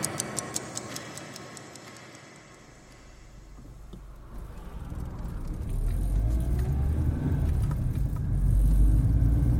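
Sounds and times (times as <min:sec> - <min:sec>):
van engine rumbling as it pulls away: 0:04.2 - 0:09.5.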